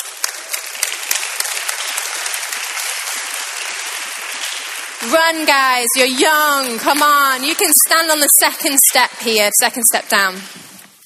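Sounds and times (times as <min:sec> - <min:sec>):
audience applause: 0:00.0 - 0:08.0
speech: 0:05.0 - 0:10.6.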